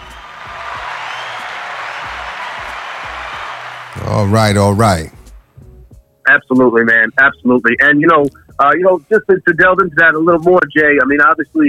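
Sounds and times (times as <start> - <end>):
audience applause: 0.0 - 5.0
speech: 4.0 - 5.2, 6.3 - 11.6.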